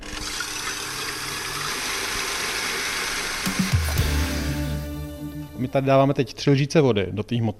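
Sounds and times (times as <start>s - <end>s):
electric mixer whipping egg whites: 0.0s - 4.0s
speech: 5.6s - 7.5s.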